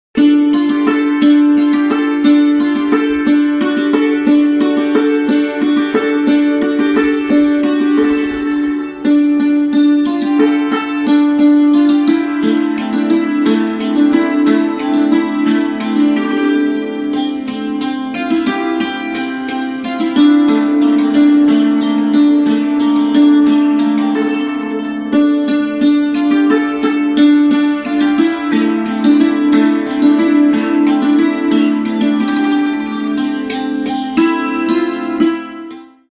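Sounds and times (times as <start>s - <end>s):
santoor instrumental ringtone: 0.2s - 36.1s.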